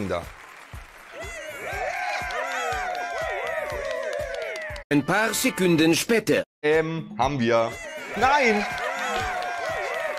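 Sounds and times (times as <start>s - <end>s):
speech: 0.0s - 0.4s, 4.9s - 8.8s
canned applause sound effect: 0.0s - 4.9s, 8.1s - 10.1s
cheers and whoops: 1.0s - 4.8s, 7.8s - 10.1s.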